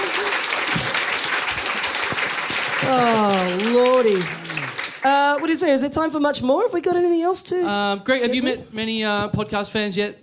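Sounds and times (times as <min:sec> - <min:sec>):
crowd applauding: 0:00.0 - 0:05.8
speech: 0:02.9 - 0:04.4, 0:05.0 - 0:10.2.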